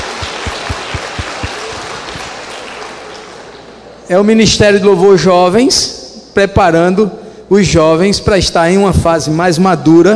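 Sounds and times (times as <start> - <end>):
audience applause: 0.0 - 3.8
speech: 4.1 - 10.1.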